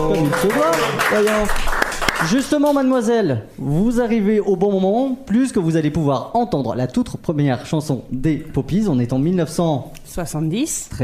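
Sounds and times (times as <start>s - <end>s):
audience applause: 0.0s - 2.5s
speech: 0.0s - 11.0s.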